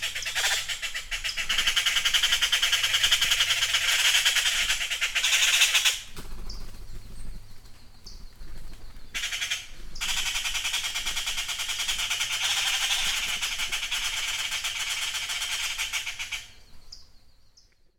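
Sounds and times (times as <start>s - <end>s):
jay calling at dawn in a forest: 0.0s - 6.1s, 9.1s - 16.6s.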